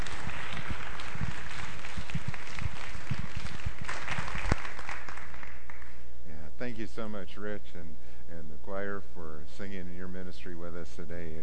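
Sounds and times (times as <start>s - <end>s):
audience applauding: 0.0s - 6.1s
speech: 7.0s - 11.4s.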